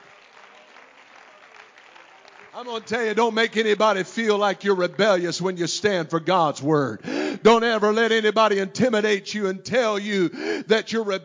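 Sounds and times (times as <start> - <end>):
audience hand clapping: 0.0 - 3.9
speech: 2.6 - 11.2.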